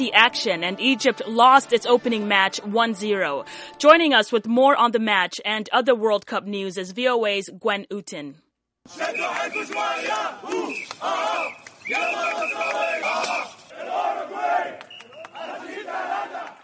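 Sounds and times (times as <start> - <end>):
speech: 0.0 - 14.6
whistles: 8.9 - 13.7, 14.8 - 15.5, 16.4 - 16.6
Egyptian and Uruguayan football fans cheering and chanting outside Ekaterinburg Stadium: 8.9 - 16.6
people shouting: 8.9 - 16.6.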